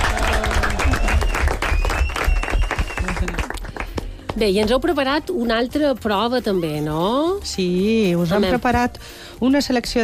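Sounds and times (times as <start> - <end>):
audience applause: 0.0 - 4.0
speech: 4.4 - 10.0.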